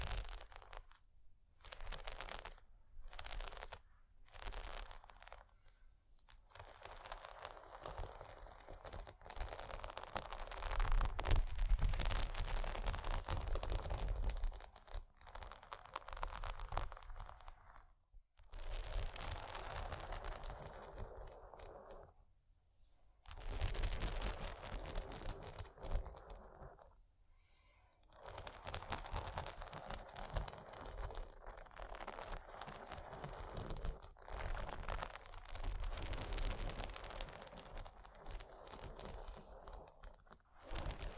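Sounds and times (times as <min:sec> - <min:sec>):
bumpy textured items scratching against each other: 0:00.0 - 0:01.0, 0:01.6 - 0:22.3, 0:23.2 - 0:41.1.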